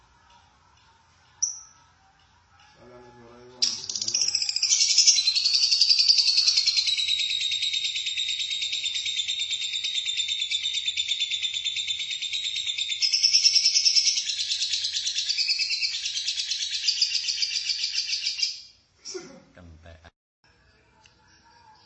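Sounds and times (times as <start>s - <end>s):
lovebird chattering song: 3.6s - 18.5s.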